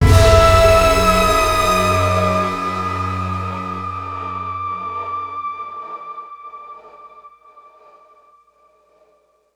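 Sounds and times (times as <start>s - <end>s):
music sting: 0.0s - 6.4s.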